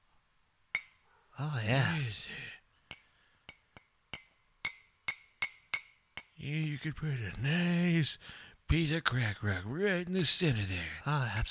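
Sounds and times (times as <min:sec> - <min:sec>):
glass crack pipe being tapped: 0:00.8 - 0:01.0, 0:02.9 - 0:06.3
speech: 0:01.4 - 0:02.6, 0:06.4 - 0:11.5.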